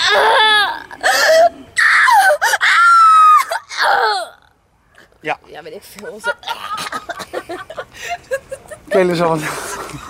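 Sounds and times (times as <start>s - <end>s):
girls screaming: 0.0s - 4.5s
laughter: 6.0s - 10.0s.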